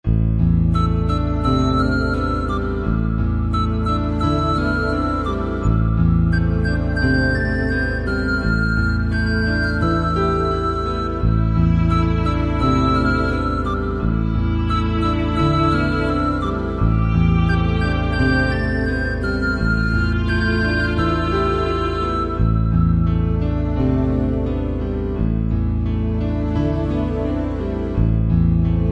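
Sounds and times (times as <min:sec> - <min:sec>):
sad Bollywood background music: 0:00.1 - 0:28.8.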